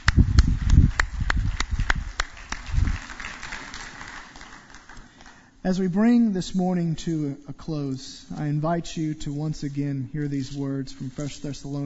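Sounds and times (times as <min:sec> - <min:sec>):
crowd round of applause: 0:00.0 - 0:05.5
speech: 0:05.6 - 0:11.8.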